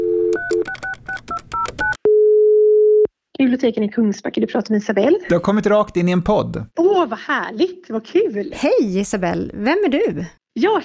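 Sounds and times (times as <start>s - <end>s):
telephone keypad tones dialing a library: 0.0s - 3.0s
speech: 3.4s - 10.8s.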